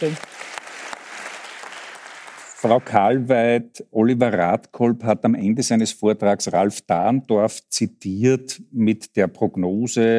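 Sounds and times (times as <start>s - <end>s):
speech: 0.0s - 0.3s, 2.6s - 10.1s
audience applause: 0.0s - 3.2s.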